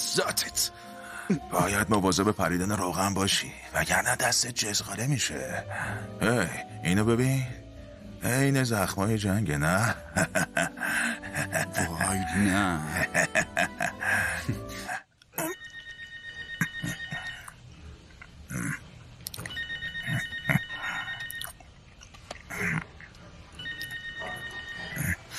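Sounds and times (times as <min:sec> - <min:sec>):
speech: 0:00.1 - 0:07.6, 0:08.2 - 0:15.0
laughter: 0:09.9 - 0:15.0
telephone ringing: 0:15.4 - 0:17.6, 0:19.5 - 0:21.6, 0:23.6 - 0:25.2.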